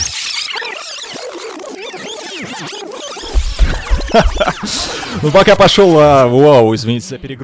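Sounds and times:
DJ rewind effect: 1.1s - 6.5s
heavy bass thumps: 3.2s - 4.8s
laughter: 3.3s - 5.3s
speech: 4.1s - 7.4s.

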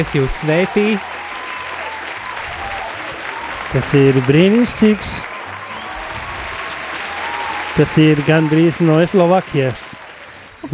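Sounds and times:
speech: 0.0s - 1.3s, 3.7s - 5.3s, 7.8s - 10.0s
audience applause: 0.0s - 10.7s.

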